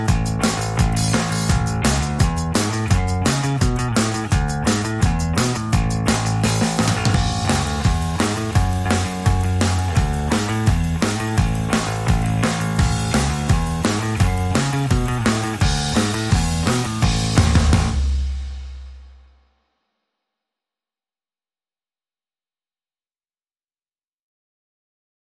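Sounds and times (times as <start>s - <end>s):
bass: 0.0s - 19.2s
drums: 0.0s - 19.6s.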